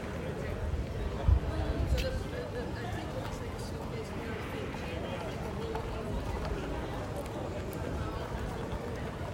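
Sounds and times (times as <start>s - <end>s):
street ambience in Rotterdam: 0.0s - 9.2s
wind in Rotterdam street: 0.0s - 9.2s.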